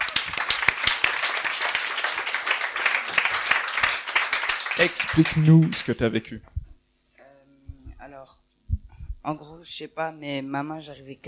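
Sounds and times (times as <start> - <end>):
audience applauding: 0.0 - 6.2
speech: 4.8 - 6.5, 9.3 - 11.2.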